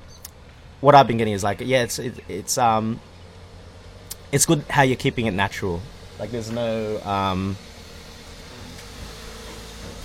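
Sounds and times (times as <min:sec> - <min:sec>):
car being moved in a garage with the door open: 0:00.0 - 0:10.0
speech: 0:00.8 - 0:03.2, 0:04.3 - 0:07.7.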